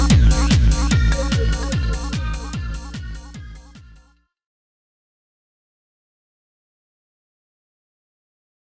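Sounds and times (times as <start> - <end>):
dance music: 0.0 - 4.2.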